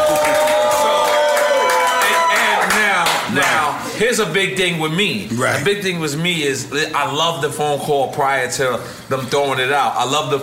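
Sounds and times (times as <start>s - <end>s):
crowd clapping: 0.0s - 3.6s
crowd cheering and whooping: 0.0s - 4.0s
speech: 4.0s - 10.4s.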